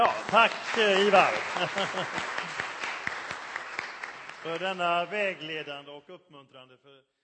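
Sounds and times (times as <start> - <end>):
speech: 0.0 - 2.6, 4.4 - 7.2
laughter: 0.0 - 3.5
audience applause: 0.0 - 5.7.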